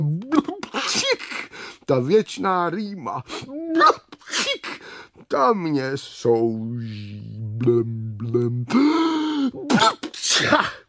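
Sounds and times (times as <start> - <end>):
loud sneeze: 0.5 - 1.4, 3.8 - 4.8, 9.6 - 10.8
speech: 1.9 - 4.0, 5.3 - 10.8.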